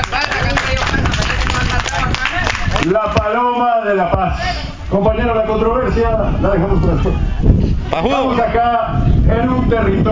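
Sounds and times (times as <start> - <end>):
audience applause: 0.0 - 2.8
speech: 2.9 - 10.1.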